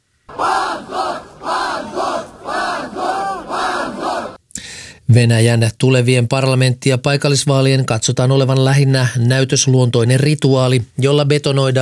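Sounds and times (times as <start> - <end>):
crowd shouting outside a courthouse: 0.3 - 4.4
speech: 5.1 - 11.8.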